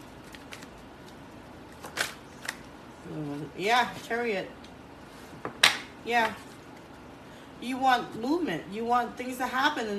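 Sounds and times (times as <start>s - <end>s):
tarot card drawn from the deck, papery rustles: 0.0s - 2.7s
speech: 3.1s - 4.6s, 6.0s - 6.5s, 7.6s - 9.9s.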